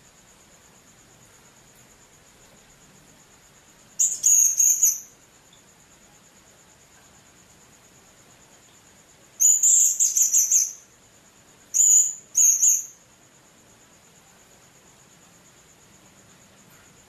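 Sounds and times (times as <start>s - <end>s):
steady high-pitched hum: 0.0s - 17.0s
blue-crowned hanging parrot chirping: 4.0s - 5.1s, 9.4s - 10.8s, 11.7s - 13.0s.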